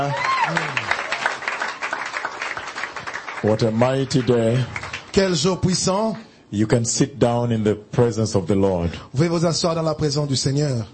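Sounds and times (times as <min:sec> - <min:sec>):
speech: 0:00.0 - 0:00.8, 0:03.4 - 0:10.9
church congregation clapping along during a praise service: 0:00.0 - 0:05.7.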